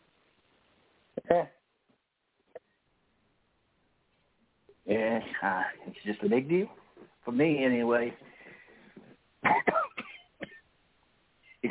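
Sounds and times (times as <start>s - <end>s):
speech: 1.3s - 1.6s, 5.4s - 8.3s
person coughing: 9.4s - 10.6s.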